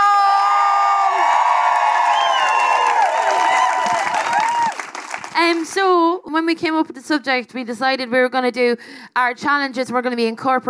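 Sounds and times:
audience cheering and whooping for a stand-up comedian: 0:00.0 - 0:05.3
audience applauding a stand-up comedian: 0:00.8 - 0:05.8
speech: 0:05.4 - 0:10.6.

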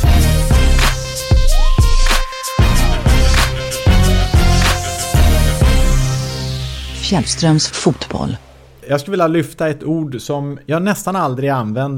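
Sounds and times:
custom radio show music jingle for a football segment: 0:00.0 - 0:08.8
speech: 0:07.1 - 0:11.9.

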